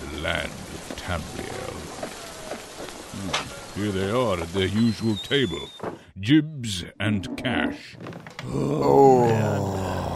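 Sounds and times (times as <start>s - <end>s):
speech: 0.2s - 1.9s, 3.2s - 10.1s
weary human groan after a long week: 8.4s - 10.1s.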